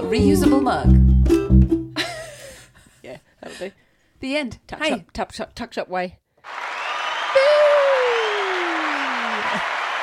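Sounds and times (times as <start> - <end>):
speech: 0.1 - 1.4, 3.6 - 6.6
short applause: 6.4 - 10.0.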